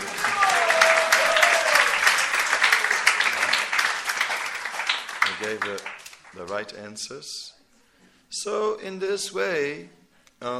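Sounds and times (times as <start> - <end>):
audience applause: 0.0 - 6.4
speech: 5.5 - 7.6, 8.3 - 10.5.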